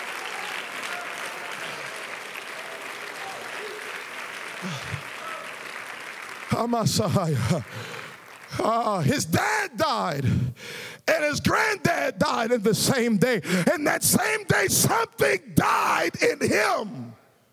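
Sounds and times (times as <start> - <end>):
audience clapping hands: 0.0 - 9.3
speech: 4.6 - 5.1, 6.6 - 17.0.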